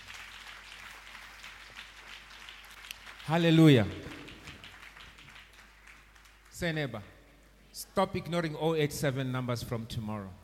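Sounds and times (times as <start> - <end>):
audience clapping hands: 0.0 - 7.1
speech: 3.3 - 4.0, 6.6 - 7.2, 7.8 - 10.4.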